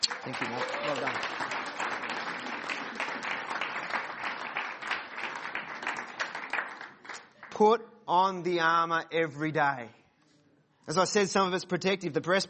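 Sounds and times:
audience applause: 0.0s - 7.6s
speech: 0.3s - 1.6s, 7.6s - 10.0s, 10.9s - 12.4s.

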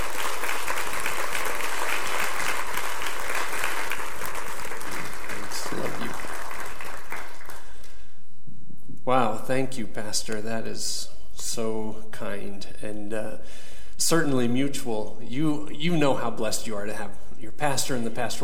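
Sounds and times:
audience applause welcoming a pastor: 0.0s - 7.8s
speech: 9.5s - 18.4s.

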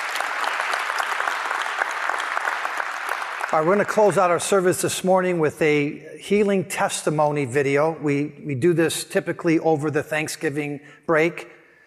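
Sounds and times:
church congregation applauding its elders during a service: 0.0s - 4.7s
speech: 3.5s - 11.6s.

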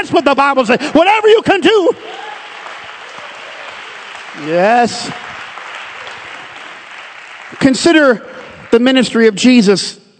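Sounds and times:
speech: 0.0s - 2.3s, 4.4s - 5.2s, 7.5s - 10.1s
crowd clapping: 1.2s - 9.6s.

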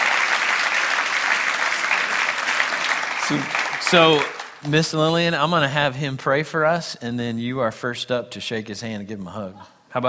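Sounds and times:
audience applause: 0.0s - 4.8s
speech: 3.3s - 10.0s.

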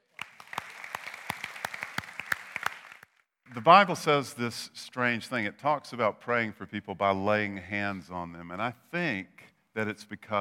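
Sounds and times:
round of applause from a crowd: 0.0s - 3.9s
speech: 3.5s - 10.3s.

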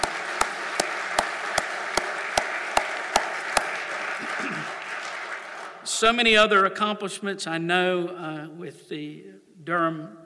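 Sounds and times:
audience clapping in unison: 0.0s - 6.0s
speech: 6.0s - 10.2s.

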